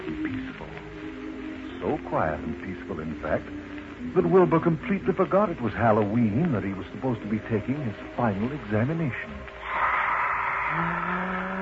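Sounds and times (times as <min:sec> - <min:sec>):
speech: 0:01.8 - 0:09.5, 0:10.7 - 0:11.2
person yawning: 0:09.8 - 0:11.6.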